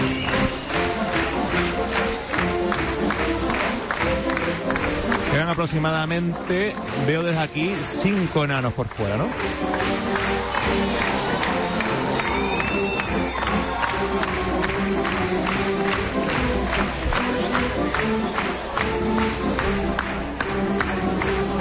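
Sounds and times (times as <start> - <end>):
whistle: 0.0 - 1.0, 11.4 - 13.8
large crowd clapping along in rhythm: 0.0 - 21.5
speech: 5.6 - 11.2.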